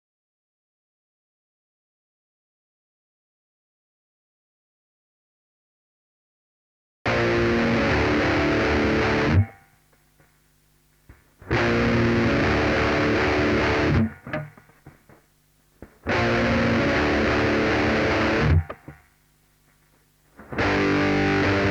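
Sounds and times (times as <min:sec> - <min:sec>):
saturated guitar: 0:07.1 - 0:09.7, 0:11.4 - 0:15.0, 0:15.8 - 0:19.0, 0:20.3 - 0:21.6.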